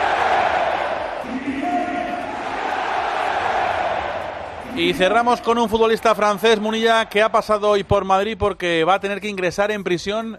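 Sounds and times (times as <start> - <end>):
stadium crowd chanting: 0.0 - 7.3
speech: 4.8 - 10.3.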